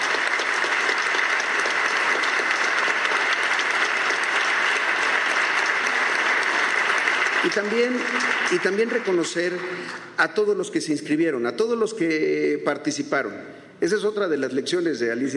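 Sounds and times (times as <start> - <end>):
audience applause: 0.0 - 9.6
speech: 7.4 - 15.3.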